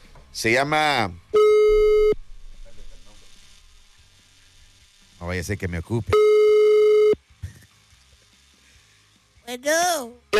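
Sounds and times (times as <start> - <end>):
speech: 0.4 - 1.3, 5.3 - 6.3, 9.5 - 10.3
buzzing telephone line tone as a call is placed: 1.3 - 7.7.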